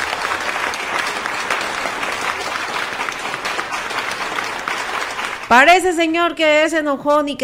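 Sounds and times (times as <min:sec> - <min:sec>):
audience applause: 0:00.0 - 0:05.6
speech: 0:05.5 - 0:07.4.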